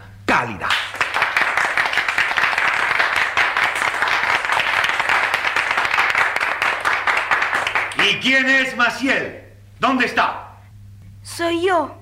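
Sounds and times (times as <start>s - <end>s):
speech: 0.4s - 0.8s, 8.2s - 10.4s, 11.4s - 12.0s
school audience ovation applause: 0.7s - 8.3s.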